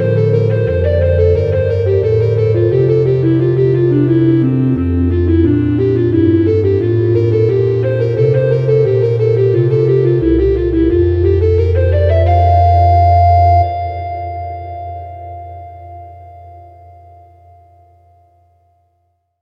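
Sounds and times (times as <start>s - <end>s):
organ playing a hymn: 0.0s - 13.8s.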